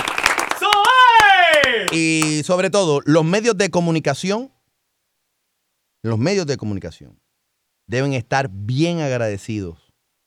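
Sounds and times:
audience applause and clapping: 0.0s - 2.2s
speech: 1.9s - 4.6s, 6.0s - 7.2s, 7.9s - 9.8s.

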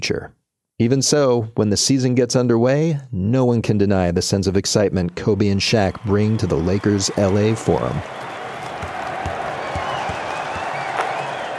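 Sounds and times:
speech: 0.0s - 8.3s
arena crowd cheering and applauding at the Forum: 5.2s - 11.5s.

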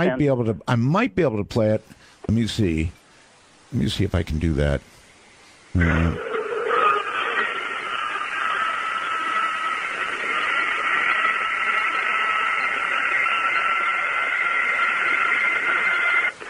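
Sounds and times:
speech: 0.0s - 3.0s, 3.7s - 4.9s, 5.7s - 6.3s
recorded intense scream: 5.8s - 16.3s.

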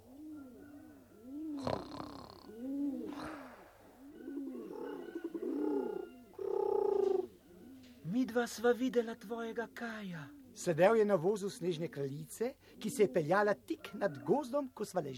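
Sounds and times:
pigeons cooing: 0.0s - 8.1s, 10.2s - 10.7s, 12.6s - 14.3s
speech: 8.4s - 15.1s.

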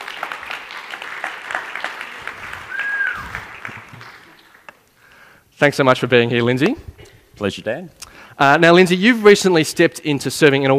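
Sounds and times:
audience applause welcoming a guest onto a stage: 0.0s - 4.8s
short whistle: 2.7s - 3.4s
speech: 5.6s - 10.7s.

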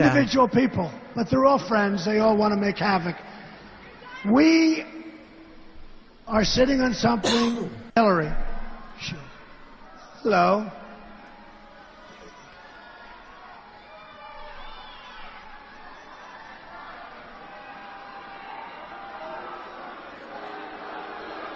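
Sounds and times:
speech: 0.0s - 3.3s, 4.2s - 5.0s, 6.3s - 9.2s, 10.2s - 10.8s
crowd booing at a rally: 11.1s - 21.5s.

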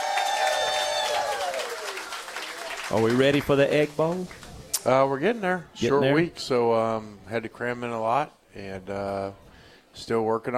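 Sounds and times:
crowd applause for Ole Miss Rebels head coach Lane Kiffin at Oxford Square: 0.0s - 4.6s
speech: 2.9s - 9.4s, 10.0s - 10.5s.

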